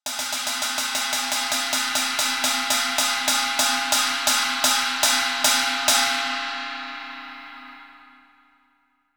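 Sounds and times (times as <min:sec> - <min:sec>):
ride cymbal: 0:00.0 - 0:07.8.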